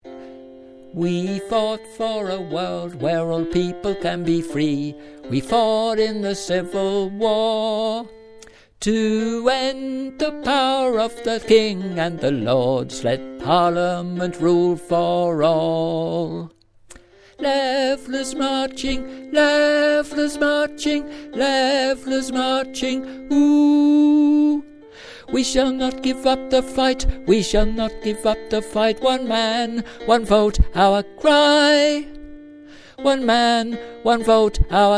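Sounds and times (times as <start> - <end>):
tenor singing: 0.8 - 34.9.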